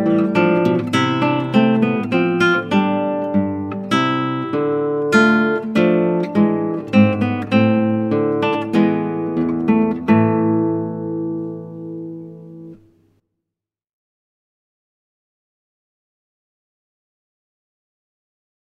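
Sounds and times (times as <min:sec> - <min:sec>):
classical guitar: 0:00.0 - 0:13.2.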